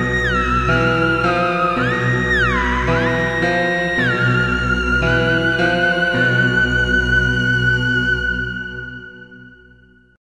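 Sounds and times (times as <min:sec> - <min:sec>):
suspense sound effect of invaders: 0:00.1 - 0:07.9.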